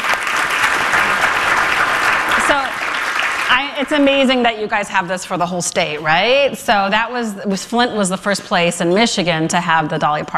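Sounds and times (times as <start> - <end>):
audience applause: 0.0 - 4.4
speech: 2.5 - 2.8, 3.5 - 10.3.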